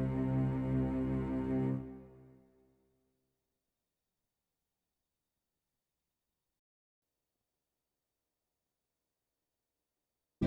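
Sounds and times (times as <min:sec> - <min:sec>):
strings: 0:00.0 - 0:02.4.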